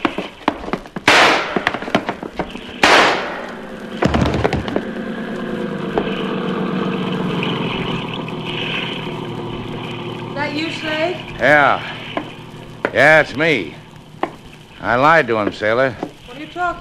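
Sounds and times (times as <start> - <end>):
gunshots: 1.0 - 2.0, 2.7 - 4.8
low motor drone: 1.5 - 16.7
speech: 11.1 - 12.0, 13.0 - 13.8, 14.8 - 16.1.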